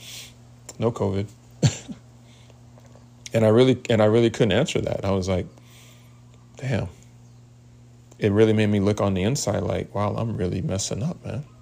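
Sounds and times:
speech: 0:00.8 - 0:02.0, 0:03.3 - 0:05.6, 0:06.6 - 0:07.0, 0:08.2 - 0:11.6
cough or sneeze: 0:01.6 - 0:02.0.

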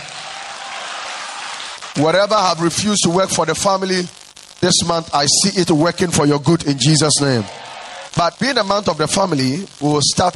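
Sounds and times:
crowd shouting: 0:00.0 - 0:01.9, 0:06.7 - 0:08.2
crowd clapping: 0:00.0 - 0:02.9, 0:06.7 - 0:08.3
speech: 0:02.0 - 0:10.3.

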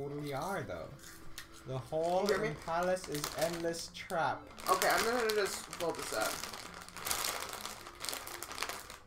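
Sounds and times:
speech: 0:00.0 - 0:06.6
crinkly plastic chip bag being unwrapped: 0:02.0 - 0:09.0.

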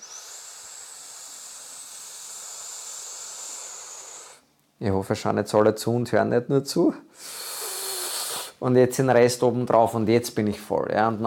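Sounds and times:
deep inhalation into the sides: 0:00.0 - 0:04.5, 0:07.1 - 0:08.6
speech: 0:04.8 - 0:07.4, 0:08.6 - 0:11.2.

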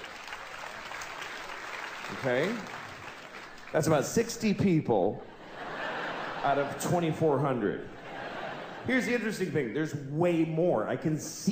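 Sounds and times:
audience applause: 0:00.0 - 0:04.0
speech: 0:02.1 - 0:02.8, 0:03.7 - 0:05.3, 0:06.4 - 0:08.0, 0:08.8 - 0:11.4
laughter: 0:05.3 - 0:09.4.

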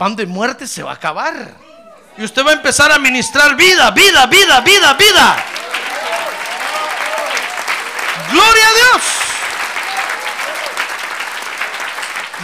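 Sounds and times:
speech: 0:00.0 - 0:05.6, 0:08.3 - 0:09.2
applause: 0:04.6 - 0:12.4.

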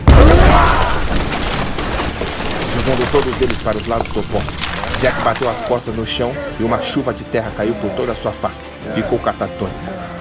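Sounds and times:
metal piece exploding beside a campfire: 0:00.0 - 0:05.5
speech: 0:02.8 - 0:10.1.

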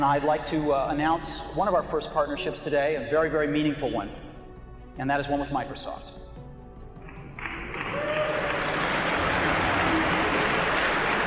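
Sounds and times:
speech: 0:00.0 - 0:04.3, 0:05.0 - 0:06.2
hesitant crowd applause: 0:07.0 - 0:11.2.

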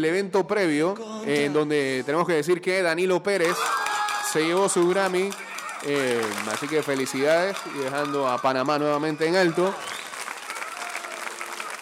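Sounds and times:
speech: 0:00.0 - 0:10.0
audience applause: 0:03.4 - 0:11.8.

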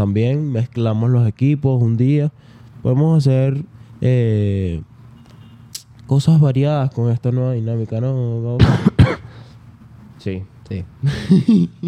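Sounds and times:
speech: 0:00.0 - 0:04.9, 0:06.1 - 0:09.2, 0:10.2 - 0:11.8
person coughing: 0:08.6 - 0:09.4.

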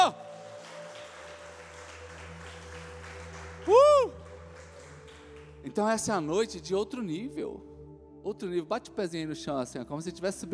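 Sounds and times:
crowd clapping: 0:00.0 - 0:06.1
speech: 0:05.8 - 0:10.5.

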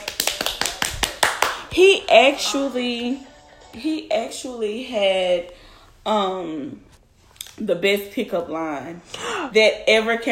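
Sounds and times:
golf claps: 0:00.0 - 0:01.8
speech: 0:01.8 - 0:06.9, 0:07.6 - 0:10.2.

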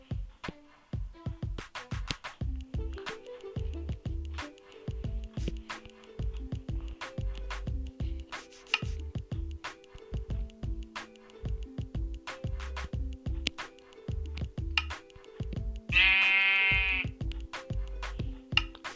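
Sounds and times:
clicking percussion: 0:01.6 - 0:18.9
plucked bass notes: 0:02.4 - 0:08.3, 0:08.9 - 0:18.7
sheep bleating: 0:15.9 - 0:17.1.

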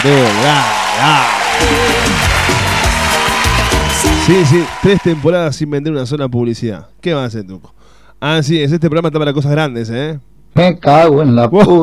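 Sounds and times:
speech: 0:00.0 - 0:02.2, 0:04.3 - 0:11.8
applause: 0:00.0 - 0:05.5.

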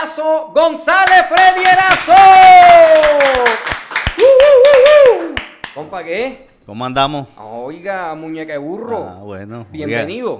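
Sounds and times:
speech: 0:00.2 - 0:03.6, 0:05.8 - 0:10.3
audience applause: 0:01.7 - 0:05.5.

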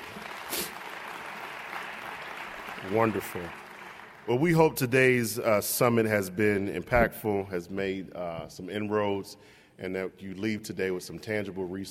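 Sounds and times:
audience round of applause: 0:00.0 - 0:04.6
speech: 0:02.8 - 0:03.6, 0:04.2 - 0:11.8.

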